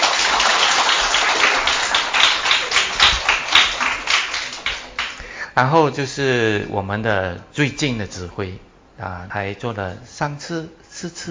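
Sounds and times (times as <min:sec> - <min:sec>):
audience applause: 0:00.0 - 0:05.2
speech: 0:05.6 - 0:11.2.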